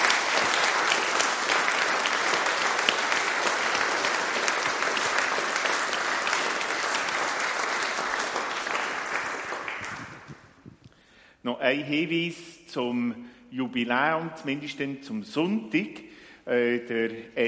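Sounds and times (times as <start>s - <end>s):
audience applause: 0.0s - 10.6s
speech: 11.5s - 17.4s.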